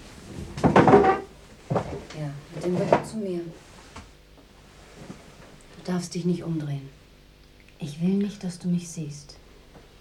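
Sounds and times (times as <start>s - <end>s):
wooden chair creaking as someone sits down: 0.3s - 3.2s
speech: 2.2s - 3.7s, 5.9s - 7.0s, 7.8s - 9.4s.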